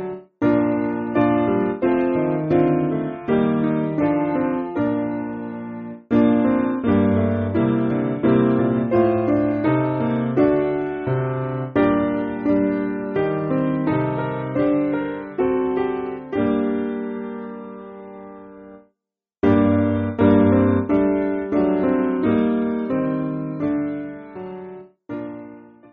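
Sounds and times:
piano: 0.0 - 25.9.

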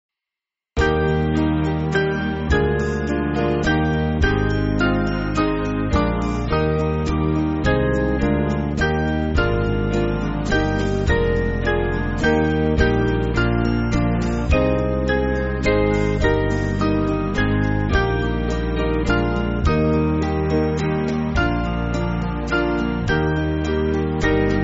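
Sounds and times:
church band backing music: 0.8 - 24.6.

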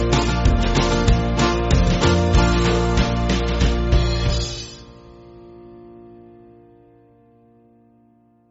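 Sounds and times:
church band backing music: 0.0 - 5.4.

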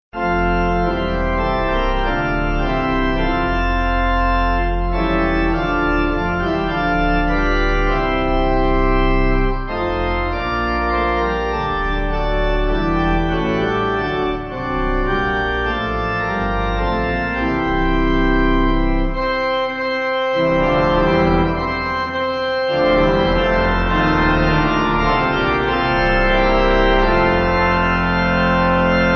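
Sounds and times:
pipe organ: 0.2 - 29.1.

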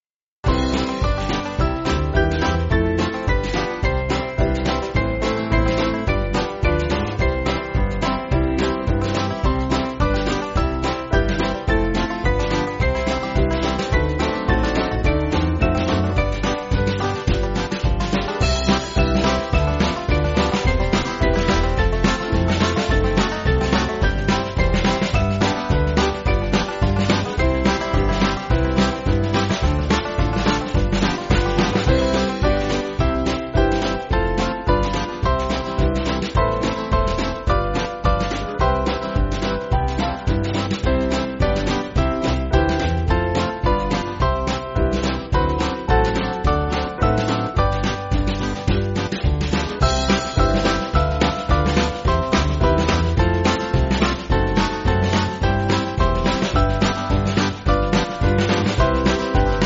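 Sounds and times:
band playing church music: 0.5 - 49.0, 49.7 - 59.6.

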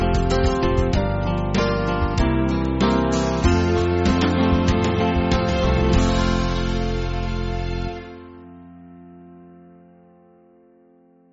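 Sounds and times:
band backing track for churches: 0.0 - 8.3.

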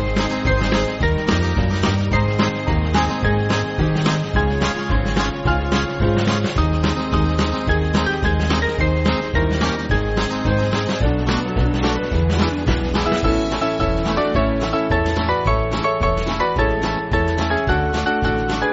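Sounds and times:
small band backing music for churches: 0.0 - 18.7.

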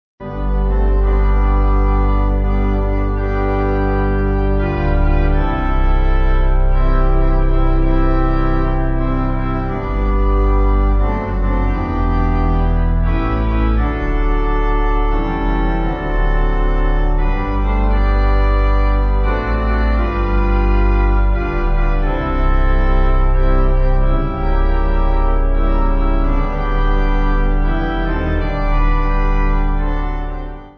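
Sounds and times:
pipe organ: 0.2 - 30.7.

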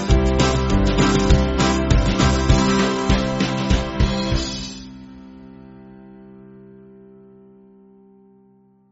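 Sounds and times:
band backing track for churches: 0.0 - 5.4.

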